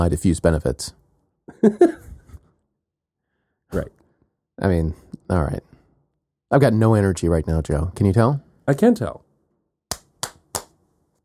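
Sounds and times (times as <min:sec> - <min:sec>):
speech: 0:00.0 - 0:01.0, 0:01.6 - 0:02.0, 0:03.7 - 0:04.0, 0:04.6 - 0:05.7, 0:06.5 - 0:09.2
laughter: 0:01.5 - 0:02.1
hand slapping own face: 0:09.9 - 0:10.8.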